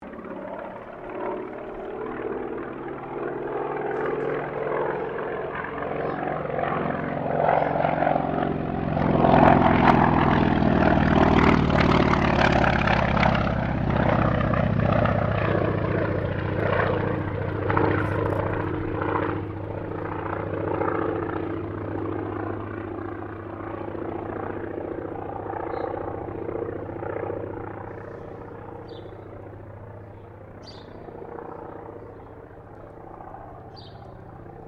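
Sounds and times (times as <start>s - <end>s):
CAC Wirraway aircraft passing: 0.0s - 34.6s.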